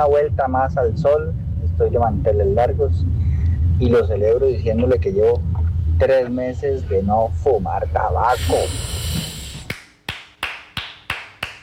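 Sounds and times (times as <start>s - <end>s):
speech: 0.0s - 9.1s
low murmur: 0.0s - 9.7s
weak hand clapping: 9.7s - 11.6s.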